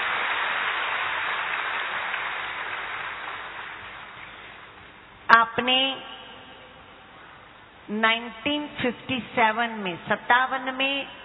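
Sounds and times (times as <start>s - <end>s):
audience applause: 0.0s - 4.2s
speech: 5.6s - 6.2s, 7.9s - 11.2s.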